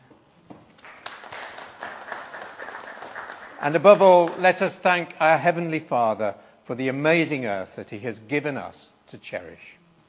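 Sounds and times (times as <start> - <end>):
crowd applauding: 0.8 - 4.8
speech: 3.6 - 9.8.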